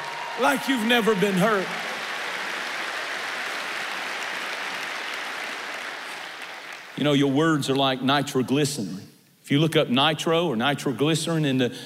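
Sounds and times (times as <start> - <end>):
audience clapping hands: 0.0 - 7.4
speech: 0.4 - 1.9, 7.0 - 11.8.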